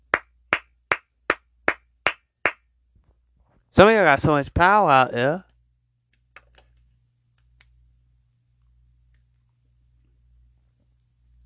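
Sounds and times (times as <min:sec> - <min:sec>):
hand claps: 0:00.1 - 0:02.7
speech: 0:03.8 - 0:05.5.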